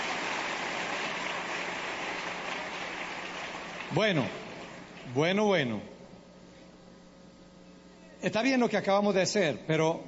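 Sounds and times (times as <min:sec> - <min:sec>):
audience applause: 0:00.0 - 0:05.0
speech: 0:03.9 - 0:04.4, 0:05.1 - 0:05.9, 0:08.2 - 0:10.0.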